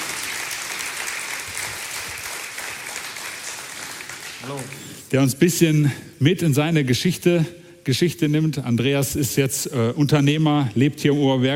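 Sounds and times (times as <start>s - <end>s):
audience applause: 0.0s - 5.1s
speech: 4.4s - 11.5s.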